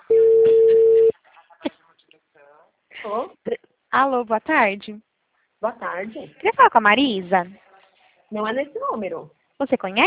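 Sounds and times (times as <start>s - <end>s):
telephone call tone: 0.0s - 1.1s
speech: 4.0s - 7.6s, 8.3s - 10.0s.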